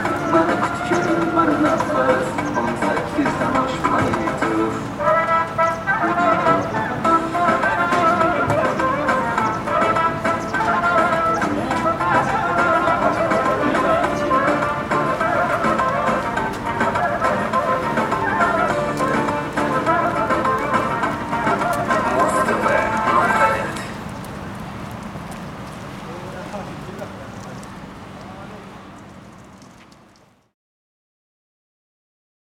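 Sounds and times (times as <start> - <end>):
Uzbek construction workers singing a song: 0.0 - 24.0.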